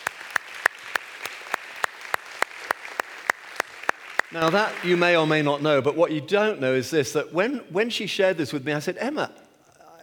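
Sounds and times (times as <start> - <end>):
audience applause: 0.0 - 5.6
speech: 4.3 - 9.4.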